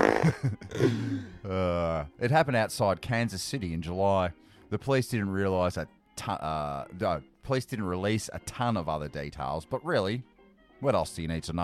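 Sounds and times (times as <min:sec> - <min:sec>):
fart sound effect: 0:00.0 - 0:00.5
speech: 0:00.2 - 0:11.6.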